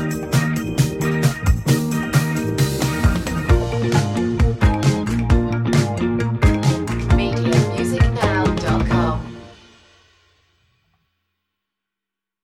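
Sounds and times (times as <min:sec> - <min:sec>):
playful comedy music: 0:00.0 - 0:09.5.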